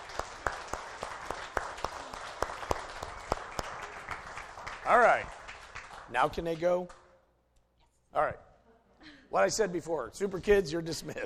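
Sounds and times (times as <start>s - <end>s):
small audience clapping to welcome a new member: 0.0s - 7.2s
speech: 4.9s - 5.4s, 6.1s - 7.0s, 8.2s - 8.4s, 9.3s - 11.2s.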